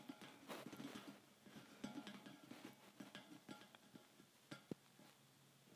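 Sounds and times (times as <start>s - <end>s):
tapping thin metal bars: 0.0s - 4.8s.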